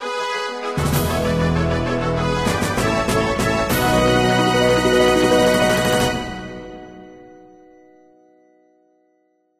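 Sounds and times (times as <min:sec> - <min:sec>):
fanfare: 0:00.0 - 0:07.2.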